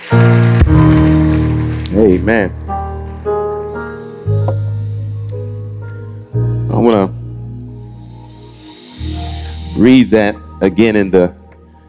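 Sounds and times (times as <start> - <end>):
audience clapping hands in praise: 0.0 - 2.4
sustained organ-like chords: 0.0 - 11.8
speech: 2.2 - 2.6, 6.9 - 7.2, 9.8 - 11.4.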